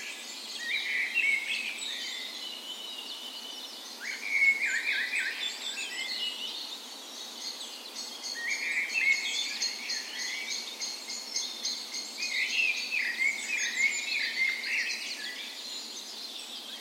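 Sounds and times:
dawn chorus of mixed birds: 0.0s - 16.7s.

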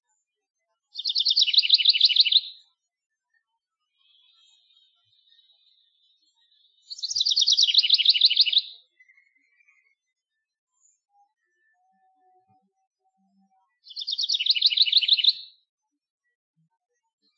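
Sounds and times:
house wren singing: 0.9s - 2.6s, 4.0s - 9.2s, 13.8s - 15.5s.

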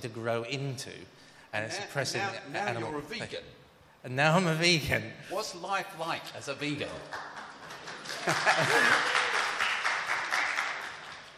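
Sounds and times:
speech: 0.0s - 7.4s, 8.2s - 9.2s
crowd applause: 7.0s - 11.3s
laughter: 7.6s - 9.6s.

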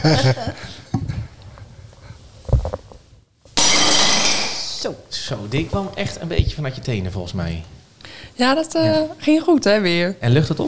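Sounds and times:
speech: 0.0s - 0.8s, 4.8s - 10.6s
plate smashing: 3.6s - 4.8s.

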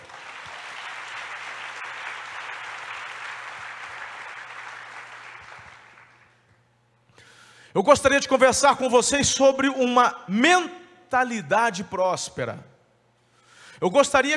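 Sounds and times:
audience applause: 0.0s - 6.4s
speech: 7.8s - 12.7s, 13.8s - 14.3s.

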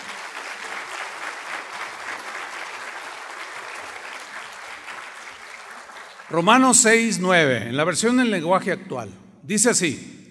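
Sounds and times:
audience applause: 0.0s - 7.0s
speech: 6.3s - 10.2s.

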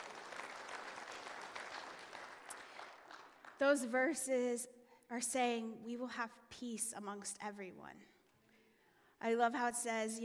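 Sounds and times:
audience clapping: 0.0s - 3.6s
speech: 3.6s - 8.2s, 9.2s - 10.2s.

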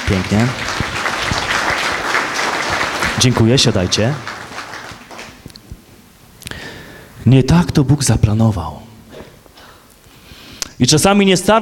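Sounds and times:
audience applause for actors: 0.0s - 5.6s
speech: 0.1s - 0.7s, 3.2s - 4.3s, 7.2s - 8.8s, 10.8s - 11.5s.

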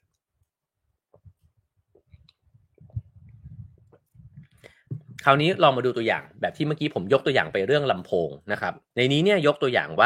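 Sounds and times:
man drinking a little water: 1.9s - 5.2s
speech: 5.2s - 10.0s.

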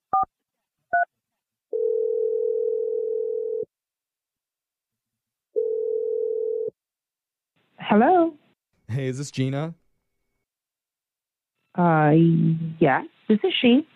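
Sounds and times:
telephone ringing tones while placing a call: 1.7s - 3.7s, 5.6s - 6.7s
speech: 7.9s - 9.8s, 11.8s - 13.9s.

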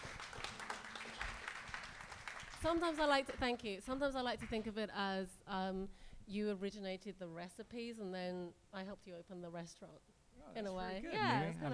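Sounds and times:
audience applause: 0.0s - 3.2s
speech: 2.6s - 11.7s.

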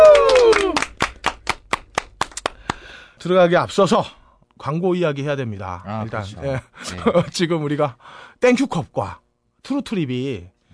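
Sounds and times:
people clapping: 0.0s - 2.9s
speech: 3.2s - 10.7s.

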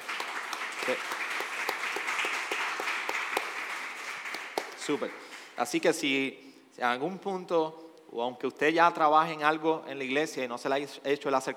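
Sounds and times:
audience applause: 0.0s - 5.6s
speech: 0.9s - 1.2s, 4.9s - 11.5s.

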